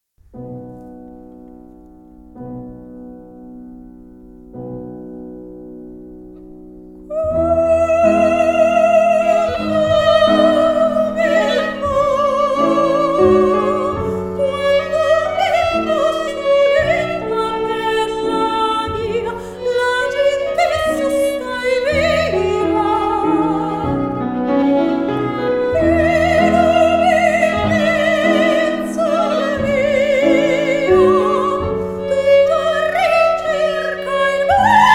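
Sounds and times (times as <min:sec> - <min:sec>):
soprano singing: 0:07.0 - 0:34.9.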